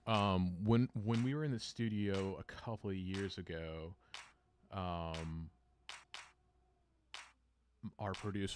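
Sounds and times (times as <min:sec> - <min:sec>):
real hand claps recorded in a studio: 0:00.0 - 0:00.4, 0:01.1 - 0:01.4, 0:02.1 - 0:02.4, 0:03.1 - 0:03.4, 0:04.1 - 0:04.4, 0:05.1 - 0:06.4, 0:07.2 - 0:07.4, 0:08.2 - 0:08.4
speech: 0:00.1 - 0:04.0, 0:04.7 - 0:05.6, 0:07.8 - 0:08.5.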